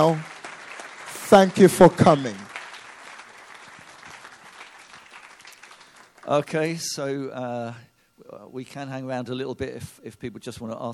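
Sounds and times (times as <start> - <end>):
speech: 0.0 - 0.3, 1.3 - 2.4, 6.3 - 10.9
audience clapping: 0.0 - 6.7.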